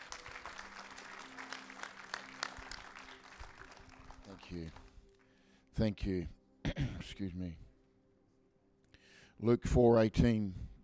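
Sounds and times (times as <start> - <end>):
audience clapping: 0.0 - 5.3
speech: 4.5 - 4.8, 5.8 - 7.6, 9.4 - 10.7.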